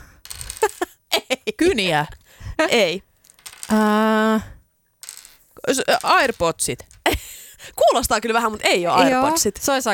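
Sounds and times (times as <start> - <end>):
shape dice being rattled: 0.2 - 0.9, 3.1 - 3.8, 5.0 - 9.5
speech: 1.5 - 3.1, 3.7 - 4.5, 5.6 - 6.9, 7.9 - 9.9.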